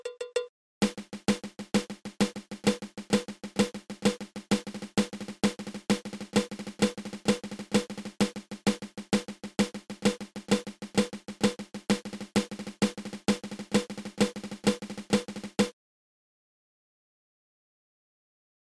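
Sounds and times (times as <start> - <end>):
snare drum flam drag rudiment: 0.8 - 15.7.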